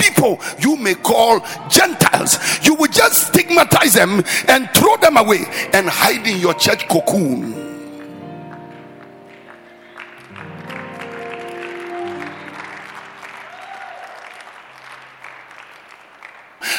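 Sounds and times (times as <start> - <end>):
speech: 0.0 - 7.7
organ or keyboard chords: 4.2 - 13.5
audience clapping: 7.8 - 16.7.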